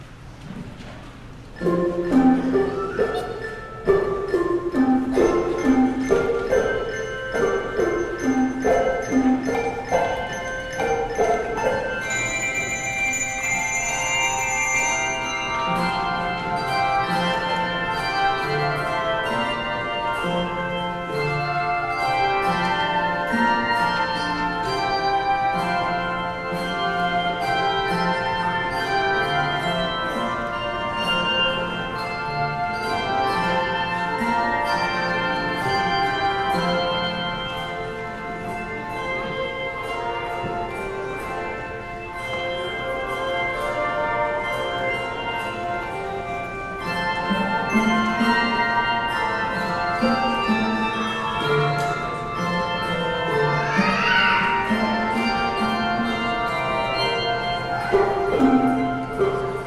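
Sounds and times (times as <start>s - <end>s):
handbells: 1.6s - 59.6s.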